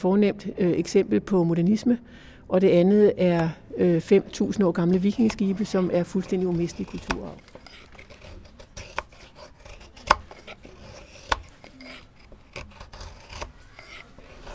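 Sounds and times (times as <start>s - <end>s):
speech: 0.0s - 7.5s
carving wooden treenails from goat willow: 4.2s - 14.5s.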